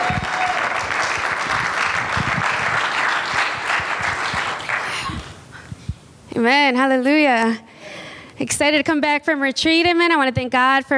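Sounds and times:
audience applause: 0.0 - 5.3
speech: 6.4 - 7.7, 8.4 - 10.9.

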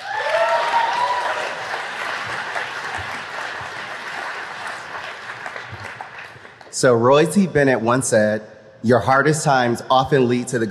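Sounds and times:
audience applause at graduation ceremony: 0.0 - 6.8
speech: 6.8 - 10.6.

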